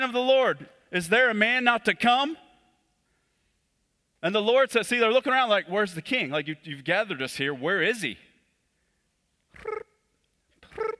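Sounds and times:
speech: 0:00.0 - 0:02.4, 0:04.2 - 0:08.2
person imitating cricket chirping with their voice: 0:09.6 - 0:09.9.

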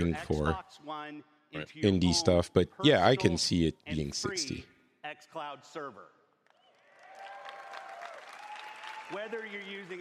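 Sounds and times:
speech: 0:00.0 - 0:06.2, 0:09.1 - 0:10.0
audience applause at a keynote: 0:06.8 - 0:10.0.

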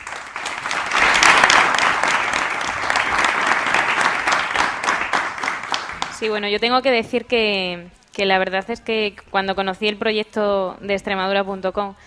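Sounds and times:
audience applause: 0:00.0 - 0:06.3
speech: 0:06.2 - 0:12.0.

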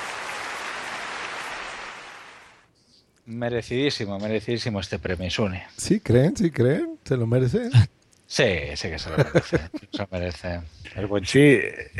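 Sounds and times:
crowd applause: 0:00.0 - 0:02.6
speech: 0:03.3 - 0:11.9
laughter: 0:09.1 - 0:10.1.

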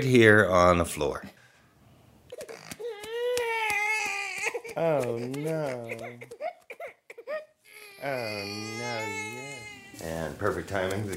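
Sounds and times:
speech: 0:00.0 - 0:01.4, 0:04.8 - 0:06.4, 0:08.0 - 0:11.1
newborn baby crying: 0:02.3 - 0:10.3.

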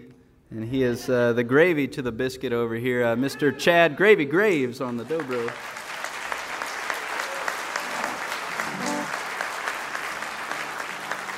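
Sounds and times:
speech: 0:00.5 - 0:05.8
audience clapping: 0:04.9 - 0:11.3
murmuring voices: 0:07.4 - 0:09.4.

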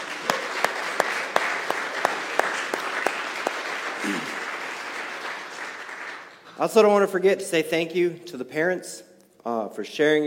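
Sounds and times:
audience applause: 0:00.0 - 0:06.6
speech: 0:06.6 - 0:10.2.

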